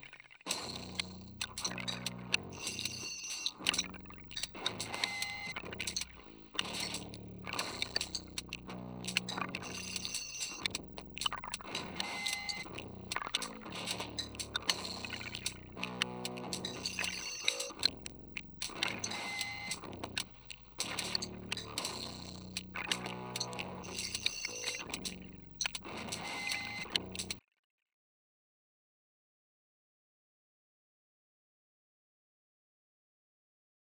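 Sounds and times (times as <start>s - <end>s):
rhythm: 0.6s - 27.4s.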